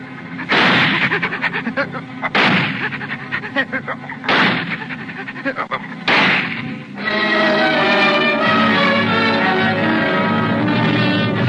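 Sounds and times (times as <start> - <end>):
sustained tonal drone: 0.0 - 11.4
laughter: 0.2 - 6.1
gunshots: 0.4 - 1.3, 2.3 - 3.0, 4.2 - 5.0, 6.0 - 6.8.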